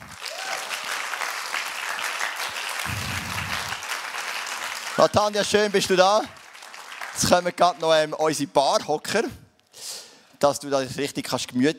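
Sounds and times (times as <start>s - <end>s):
audience applause: 0.0s - 7.6s
low rumble: 2.9s - 3.8s
speech: 5.0s - 6.4s, 7.2s - 9.4s, 10.4s - 11.7s.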